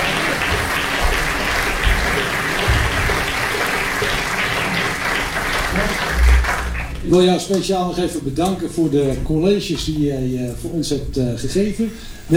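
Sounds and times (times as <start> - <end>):
audience applause: 0.0 - 9.9
laughter: 0.0 - 12.3
speech: 7.1 - 12.3.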